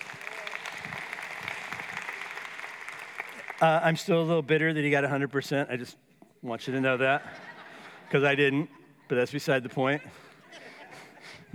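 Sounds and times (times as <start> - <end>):
audience clapping: 0.0 - 4.0
speech: 3.6 - 7.4, 8.1 - 10.2
laughter: 6.9 - 11.5.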